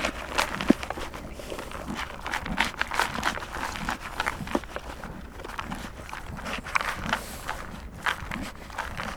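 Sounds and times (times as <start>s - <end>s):
horse eating oats from a bucket: 0.0s - 9.1s.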